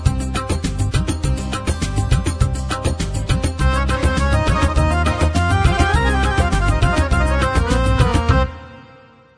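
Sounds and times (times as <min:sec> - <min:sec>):
Indian pop music on a Korg Pa80 keyboard: 0:00.0 - 0:08.5.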